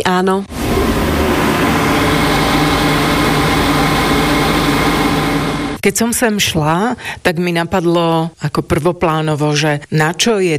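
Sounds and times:
speech: 0:00.0 - 0:01.0, 0:05.8 - 0:10.5
ventilation fan and vacuum pump hum: 0:00.5 - 0:05.8.

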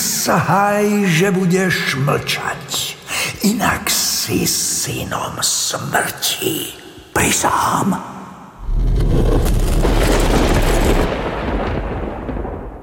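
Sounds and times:
speech: 0:00.2 - 0:02.7, 0:03.4 - 0:08.2
rock opening with a rumble: 0:08.6 - 0:12.7.

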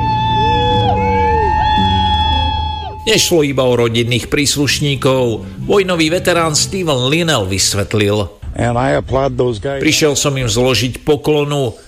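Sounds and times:
thousands of people cheering joyfully: 0:00.0 - 0:03.5
loud music: 0:00.0 - 0:07.6
speech: 0:03.1 - 0:11.8.

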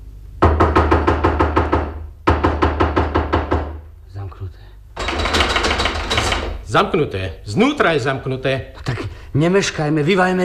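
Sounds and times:
knocking on a door: 0:00.4 - 0:03.9, 0:05.0 - 0:06.7
speech: 0:04.4 - 0:04.8, 0:06.7 - 0:10.4.

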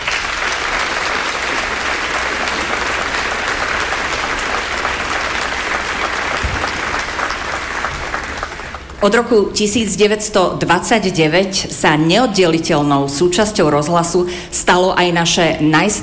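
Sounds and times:
sustained applause from a large audience: 0:00.0 - 0:09.0
speech: 0:09.0 - 0:16.0.

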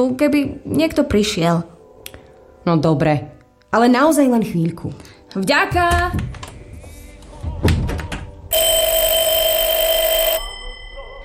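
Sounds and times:
speech: 0:00.0 - 0:01.7, 0:02.6 - 0:06.4
telephone ringing: 0:08.5 - 0:11.2.

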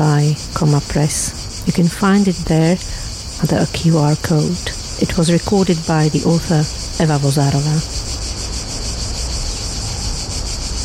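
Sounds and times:
speech: 0:00.0 - 0:08.2
singing cicadas: 0:00.0 - 0:10.8.

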